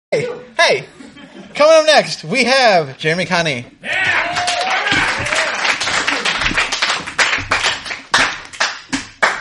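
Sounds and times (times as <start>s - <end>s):
speech: 0.1s - 1.0s, 1.6s - 4.4s
audience applause at a video game talk event: 4.2s - 9.3s.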